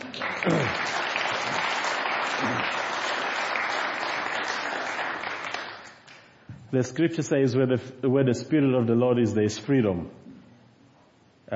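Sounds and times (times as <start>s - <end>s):
clapping for the choir: 0.0s - 6.3s
speech: 6.7s - 10.2s.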